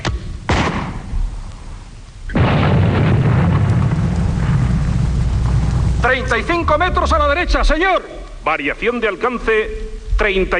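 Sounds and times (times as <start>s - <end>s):
artillery cannon fire radio drama sound effect: 0.5s - 1.1s, 2.3s - 6.2s
speech: 6.1s - 10.5s.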